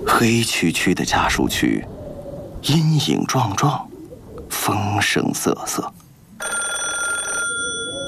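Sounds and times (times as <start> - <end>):
speech: 0.2 - 2.0, 2.6 - 3.9, 4.7 - 6.0
telephone bell ringing in a building: 6.4 - 8.0.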